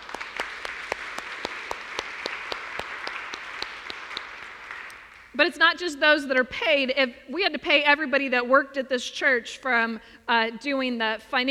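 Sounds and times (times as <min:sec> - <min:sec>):
audience applause: 0:00.0 - 0:05.3
speech: 0:05.4 - 0:11.4.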